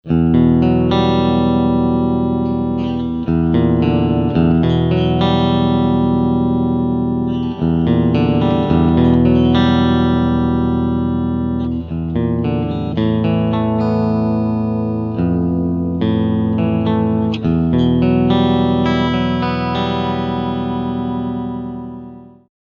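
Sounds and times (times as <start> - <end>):
single-coil electric guitar picking: 0.0 - 22.5.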